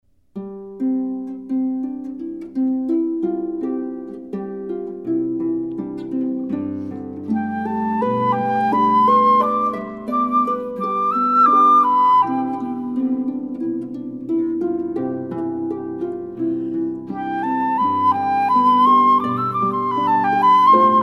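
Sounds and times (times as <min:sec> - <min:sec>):
harp: 0:00.2 - 0:21.0.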